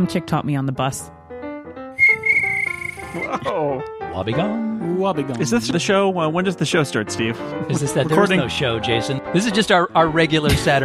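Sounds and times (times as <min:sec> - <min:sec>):
speech: 0:00.0 - 0:01.2, 0:03.1 - 0:10.8
person whistling in imitation of a cricket chirp: 0:02.0 - 0:03.4
laughter: 0:03.1 - 0:03.8, 0:07.3 - 0:08.9.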